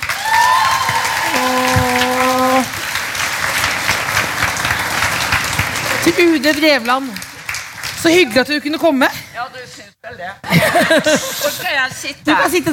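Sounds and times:
applause: 0.0 - 8.6
speech: 6.1 - 7.3, 8.0 - 12.7
laughter: 10.4 - 11.7.

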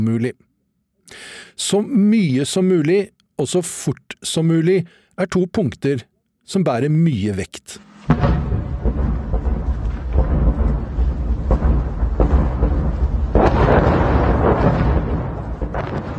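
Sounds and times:
speech: 0.0 - 0.5, 1.1 - 8.5
artillery fire at a front line: 7.9 - 16.1.

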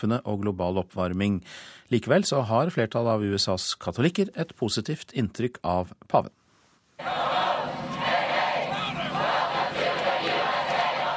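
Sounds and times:
speech: 0.0 - 6.4
crowd chanting welcome at airfield: 7.0 - 11.1.

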